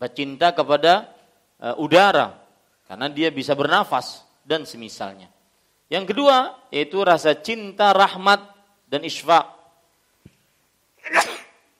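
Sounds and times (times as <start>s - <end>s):
speech: 0.0s - 9.6s
person sneezing: 11.0s - 11.7s.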